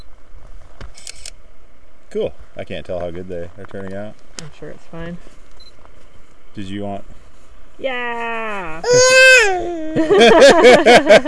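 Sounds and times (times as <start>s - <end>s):
speech: 2.1s - 5.4s, 6.6s - 7.2s, 7.8s - 11.2s
baby babbling and squealing while copying someone: 8.8s - 10.0s
laughter: 9.9s - 11.2s.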